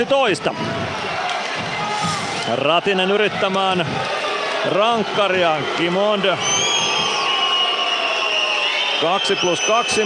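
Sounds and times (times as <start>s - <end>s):
speech: 0.0s - 1.1s, 2.4s - 6.7s, 9.0s - 10.0s
large arena crowd whistling: 0.6s - 10.0s.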